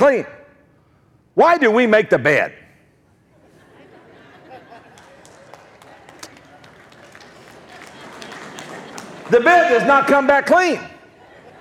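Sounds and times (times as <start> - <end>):
speech: 0.0 - 0.4, 1.4 - 2.6, 9.3 - 10.9
laughter: 3.3 - 11.6
audience members applauding: 4.4 - 10.3.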